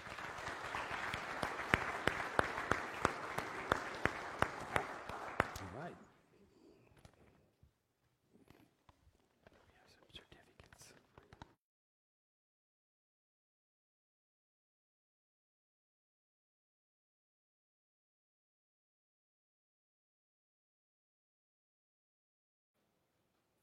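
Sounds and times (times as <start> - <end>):
church congregation applauding a new member: 0.0 - 6.1.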